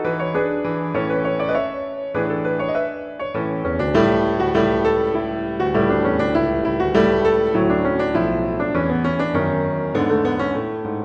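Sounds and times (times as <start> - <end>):
bridal song: 0.2 - 11.0.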